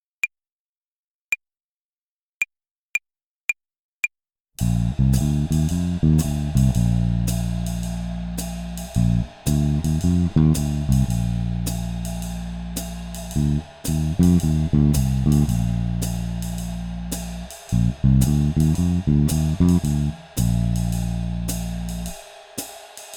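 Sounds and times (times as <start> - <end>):
swing phrasing exercise: 4.6 - 22.4.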